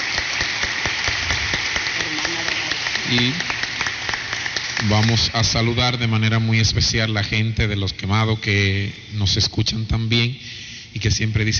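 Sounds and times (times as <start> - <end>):
birthday applause from the audience: 0.0 - 6.2
speech: 3.1 - 3.5, 4.8 - 11.5.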